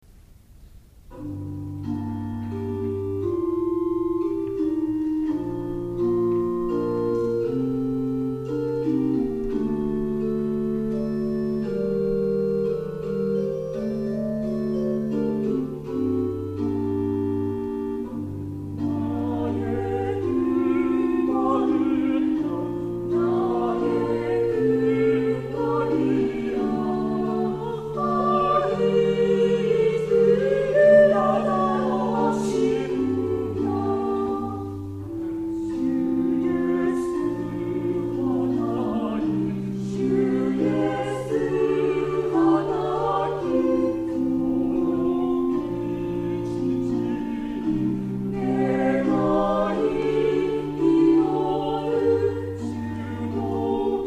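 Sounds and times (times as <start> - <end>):
choir singing: 1.1 - 54.0.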